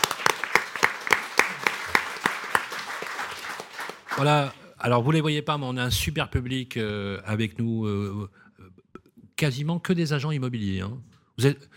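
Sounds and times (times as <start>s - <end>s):
audience applause: 0.0s - 4.6s
speech: 4.2s - 8.4s, 9.4s - 11.7s.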